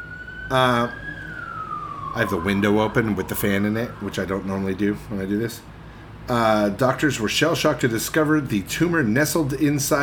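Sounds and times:
police car sirens: 0:00.0 - 0:06.2
speech: 0:00.5 - 0:01.1, 0:02.1 - 0:05.7, 0:06.3 - 0:10.0.

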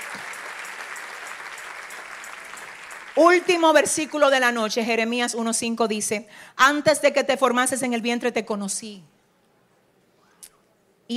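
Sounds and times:
audience applause: 0:00.0 - 0:04.2
speech: 0:03.2 - 0:09.1.

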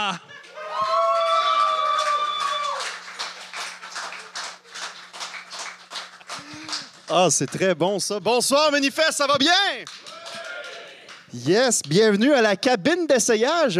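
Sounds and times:
speech: 0:00.0 - 0:00.4, 0:07.1 - 0:10.0, 0:11.3 - 0:13.7
audience applause: 0:00.4 - 0:07.7, 0:09.9 - 0:11.3.

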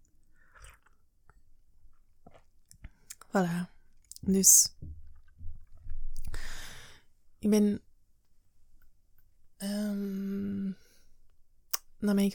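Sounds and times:
person gulping water: 0:00.4 - 0:03.2, 0:04.1 - 0:06.6
speech: 0:03.3 - 0:04.8, 0:07.4 - 0:07.9, 0:09.6 - 0:10.8, 0:12.0 - 0:12.3.

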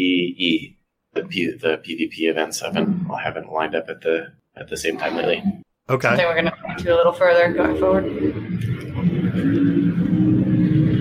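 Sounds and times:
speech: 0:00.0 - 0:08.8
big truck passing outside: 0:07.2 - 0:10.9.

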